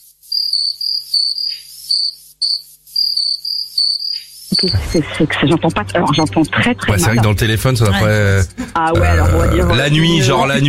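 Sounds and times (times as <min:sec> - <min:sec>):
cricket chirping: 0:00.0 - 0:04.7
speech: 0:00.6 - 0:02.4, 0:04.6 - 0:10.6.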